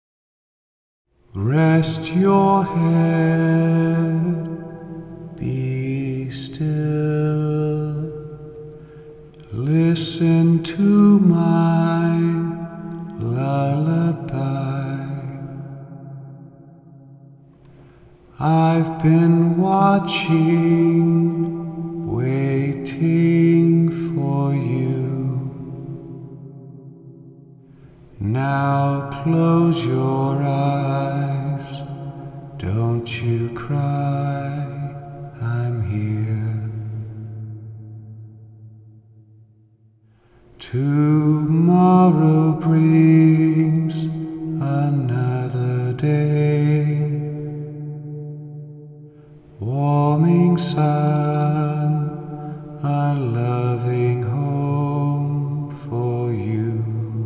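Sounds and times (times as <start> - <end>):
lullaby: 1.4 - 15.8, 17.6 - 26.3, 27.8 - 37.4, 40.6 - 47.8, 49.2 - 57.2.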